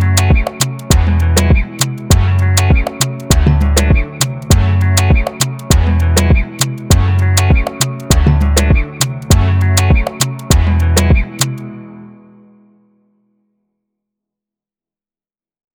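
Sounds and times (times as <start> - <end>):
Afrobeat instrumental music in A major: 0.0 - 12.0.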